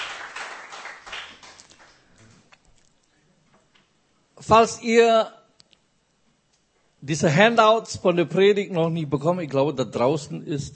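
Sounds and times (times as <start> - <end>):
audience applause: 0.0 - 2.0
speech: 4.4 - 5.4, 7.1 - 10.7.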